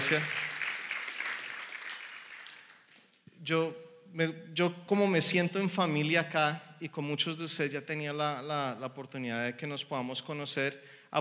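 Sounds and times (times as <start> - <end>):
speech: 0.0 - 0.4, 3.4 - 11.1
audience applauding: 0.0 - 3.1.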